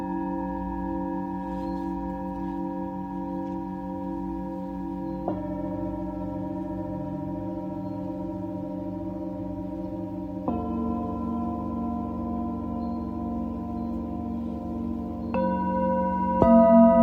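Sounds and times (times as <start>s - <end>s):
singing bowl ringing: 0.0s - 17.0s.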